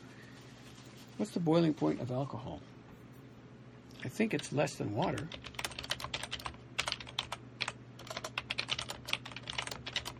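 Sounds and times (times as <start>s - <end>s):
speech: 1.2s - 2.7s, 4.0s - 5.6s
typing on a computer keyboard: 5.2s - 10.1s.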